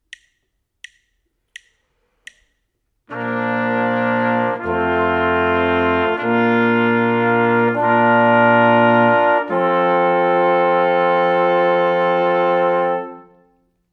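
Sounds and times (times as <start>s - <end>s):
brass quartet: 3.1s - 13.7s.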